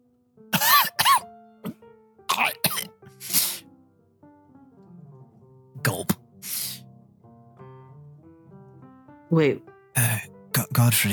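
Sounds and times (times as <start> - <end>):
rough choking cough: 0.6 - 2.9
speech: 9.3 - 10.1, 10.8 - 11.1.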